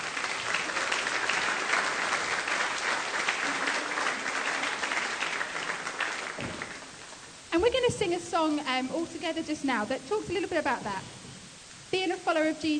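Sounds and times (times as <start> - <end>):
audience applause: 0.0 - 7.3
speech: 7.6 - 11.2, 11.9 - 12.7.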